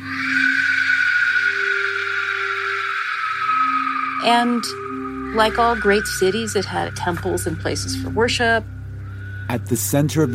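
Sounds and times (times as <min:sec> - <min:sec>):
Aztec warrior whistle shrieking: 0:00.0 - 0:10.3
speech: 0:04.2 - 0:08.8, 0:09.5 - 0:10.3.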